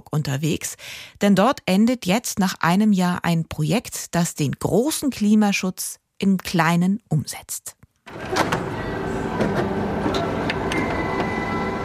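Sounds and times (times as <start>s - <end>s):
speech: 0.1s - 8.8s
printer running in a small copy shop in Oldenburg-Harentor: 8.1s - 11.8s.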